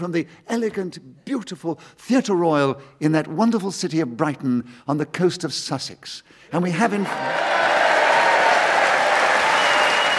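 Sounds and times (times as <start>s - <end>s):
speech: 0.0s - 7.8s
theatre audience applauding: 7.0s - 10.1s.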